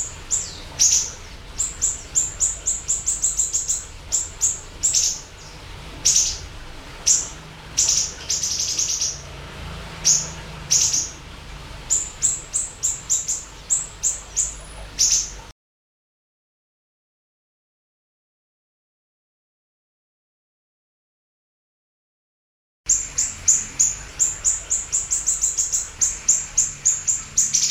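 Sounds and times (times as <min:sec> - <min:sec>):
siri-siri chirping: 0:00.0 - 0:09.4, 0:10.0 - 0:15.5, 0:22.9 - 0:27.6.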